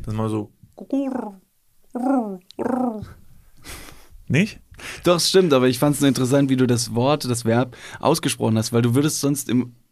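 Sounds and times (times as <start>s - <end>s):
speech: 0.0s - 9.9s
person mimicking a pigeon's cooing: 0.8s - 3.2s.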